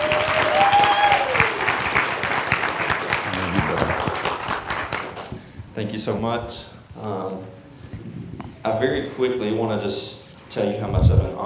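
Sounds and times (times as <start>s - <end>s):
church congregation applause welcoming a guest speaker: 0.0s - 5.4s
speech: 5.8s - 7.6s, 8.6s - 11.4s.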